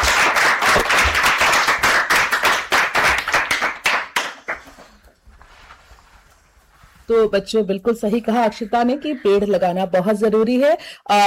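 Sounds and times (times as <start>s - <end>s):
children clapping: 0.0s - 5.0s
speech: 7.1s - 11.2s.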